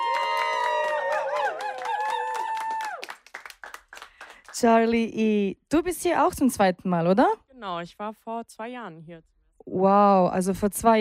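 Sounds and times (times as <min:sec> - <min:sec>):
audience applause and cheering: 0:00.0 - 0:04.6
speech: 0:04.6 - 0:10.9.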